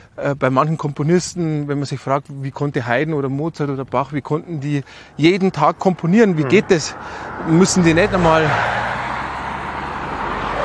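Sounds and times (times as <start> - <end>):
speech: 0.2 - 9.0
cars passing by on a road: 3.8 - 10.6.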